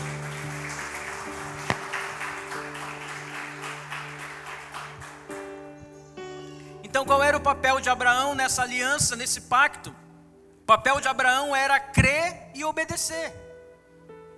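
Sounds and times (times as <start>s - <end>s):
audience applause: 0.0s - 5.7s
organ-like chords: 0.0s - 11.8s
speech: 7.0s - 10.0s, 10.7s - 13.4s.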